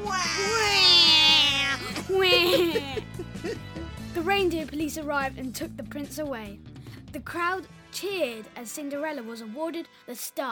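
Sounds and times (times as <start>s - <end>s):
voice imitating baby wailing: 0.0s - 3.0s
laughter: 1.8s - 3.9s
speech: 4.4s - 10.5s.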